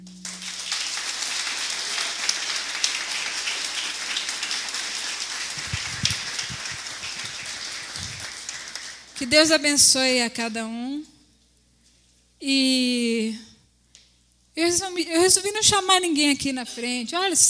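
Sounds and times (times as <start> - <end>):
audience applauding: 0.0 - 9.3
speech: 9.2 - 11.1, 12.4 - 13.5, 14.6 - 17.4.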